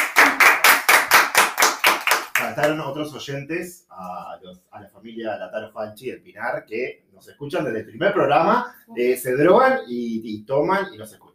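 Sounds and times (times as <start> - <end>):
applause: 0.0 - 2.8
speech: 2.6 - 11.3.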